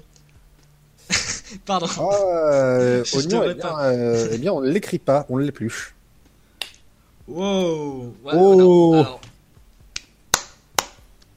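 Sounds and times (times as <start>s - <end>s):
speech: 1.5s - 6.0s, 7.3s - 9.3s
claps made while holding a Nintendo 3DS stylus: 9.2s - 11.3s.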